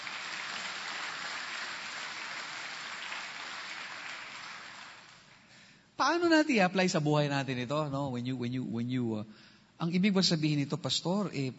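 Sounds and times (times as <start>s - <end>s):
church congregation applauding God during a service: 0.0s - 5.6s
speech: 6.0s - 11.5s.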